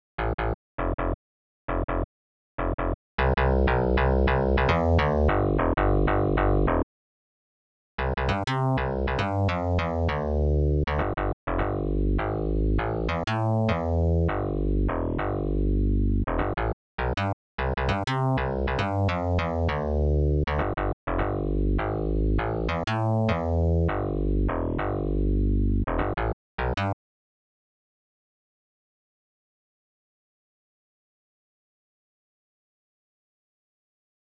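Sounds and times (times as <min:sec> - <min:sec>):
bass: 0:00.2 - 0:06.9, 0:08.0 - 0:27.0.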